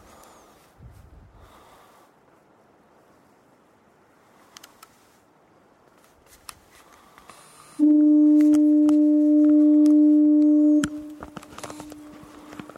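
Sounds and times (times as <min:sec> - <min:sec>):
lighthouse foghorn: 0:07.8 - 0:12.7.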